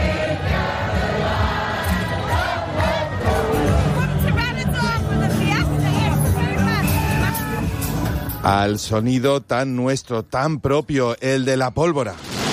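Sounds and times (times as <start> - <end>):
crowd babble on a busy tourist street in Benidorm's Zona Guiri: 0.0 - 8.6
speech: 8.5 - 12.4.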